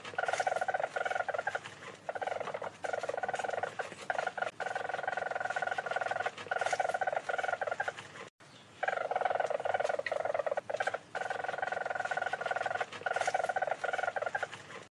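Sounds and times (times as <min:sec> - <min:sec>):
weasel trilling: 0:00.0 - 0:08.0, 0:08.7 - 0:14.8.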